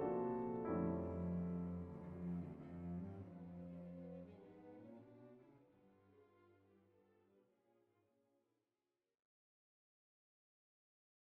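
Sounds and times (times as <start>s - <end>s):
piano concerto: 0.0s - 4.3s.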